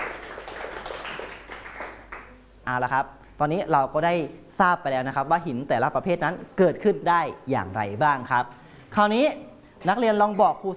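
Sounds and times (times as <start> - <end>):
students clapping in a classroom for a classmate: 0.0 - 2.4
speech: 2.7 - 10.7.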